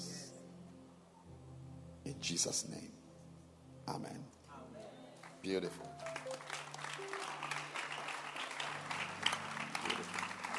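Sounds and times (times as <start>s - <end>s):
speech: 2.1s - 3.0s, 3.9s - 4.4s, 5.4s - 7.5s
audience clapping: 5.2s - 10.5s.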